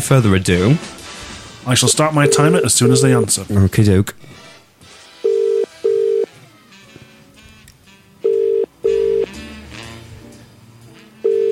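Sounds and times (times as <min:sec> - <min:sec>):
speech: 0:00.0 - 0:01.0, 0:01.6 - 0:04.4
telephone ringing tone: 0:02.2 - 0:03.3, 0:05.2 - 0:06.3, 0:08.2 - 0:09.3, 0:11.2 - 0:11.5.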